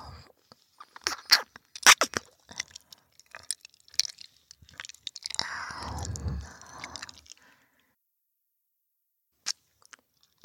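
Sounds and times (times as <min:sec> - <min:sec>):
binaural ASMR ear licking sounds: 0:00.7 - 0:07.4.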